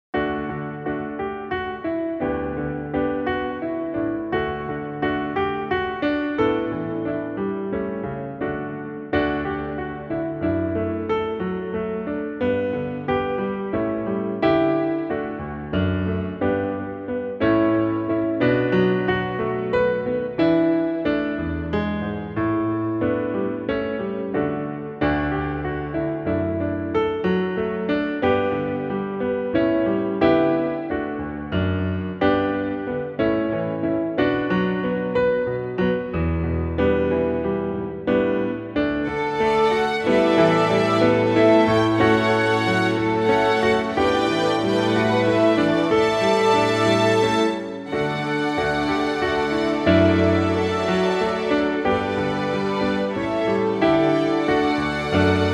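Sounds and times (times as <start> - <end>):
instrumental backing track without melody: 0.1 - 55.5.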